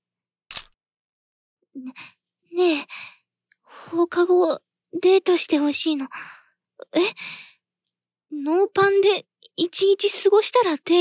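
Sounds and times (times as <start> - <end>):
camera shutter click as a photo is taken: 0.5 - 0.7
speech: 1.8 - 3.1, 4.0 - 7.5, 8.3 - 10.9.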